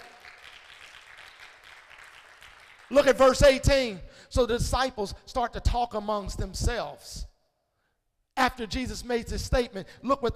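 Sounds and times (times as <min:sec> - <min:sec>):
audience clapping hands: 0:00.0 - 0:03.4
speech: 0:02.9 - 0:07.3, 0:08.4 - 0:10.3.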